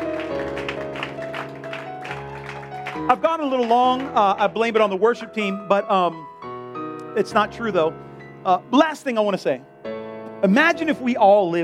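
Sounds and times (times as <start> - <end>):
audience clapping: 0.0 - 5.0
sustained keyboard chords: 0.0 - 11.6
speech: 3.0 - 6.3, 7.2 - 9.7, 10.4 - 11.6.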